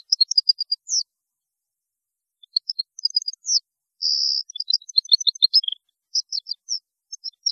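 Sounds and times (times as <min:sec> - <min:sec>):
European goldfinch song: 0:02.6 - 0:06.6.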